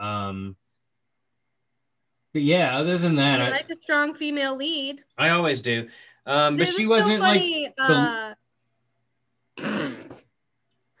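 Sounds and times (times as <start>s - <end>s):
speech: 2.3s - 8.4s
fart: 9.6s - 10.3s.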